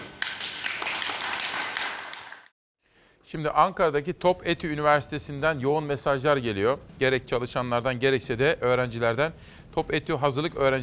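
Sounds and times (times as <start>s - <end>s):
clapping: 0.0s - 2.5s
speech: 3.3s - 10.8s.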